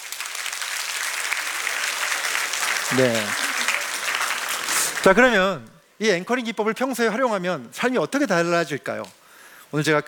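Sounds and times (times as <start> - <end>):
audience applause for partners at a Korean self-help talk: 0.0 - 5.7
speech: 2.9 - 3.4, 5.0 - 10.0.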